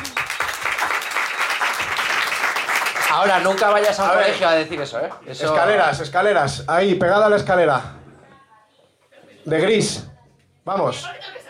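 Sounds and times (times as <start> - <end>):
audience applause: 0.0 - 5.2
speech: 3.1 - 8.0, 9.5 - 11.4.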